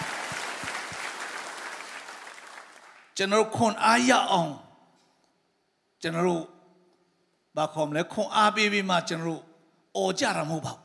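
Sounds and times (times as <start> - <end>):
congregation clapping hands during a church service: 0.0 - 3.3
speech: 3.2 - 4.6, 6.0 - 6.5, 7.6 - 10.8.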